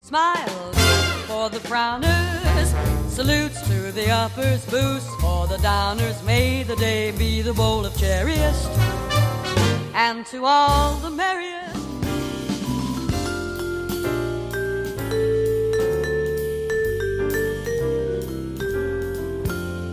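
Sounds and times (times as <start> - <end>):
jazzy holiday music: 0.2 - 19.9.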